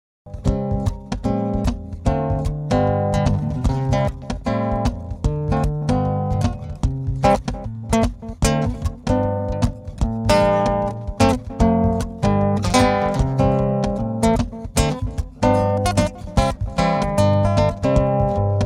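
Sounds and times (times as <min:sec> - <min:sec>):
solo fingerstyle guitar: 0:00.3 - 0:18.6.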